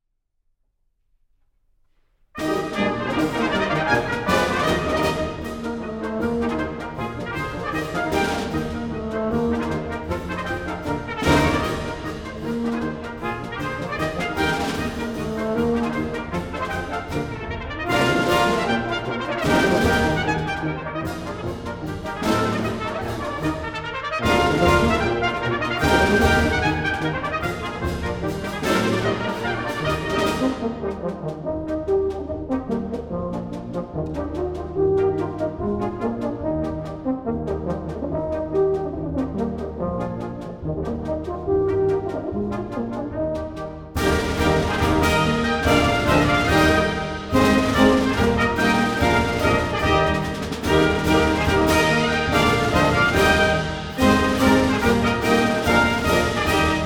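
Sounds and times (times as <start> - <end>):
Civil War brass band playing: 2.4 - 56.8.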